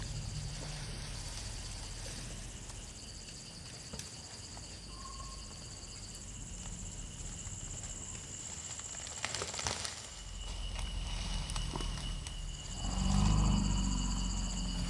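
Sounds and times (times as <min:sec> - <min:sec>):
elephants: 0:00.0 - 0:06.3, 0:09.5 - 0:14.8.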